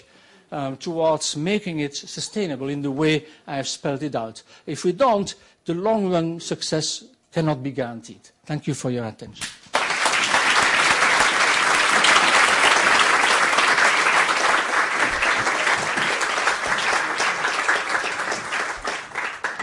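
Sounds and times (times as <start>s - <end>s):
speech: 0.0s - 9.6s
audience applause after a speech: 9.7s - 19.6s.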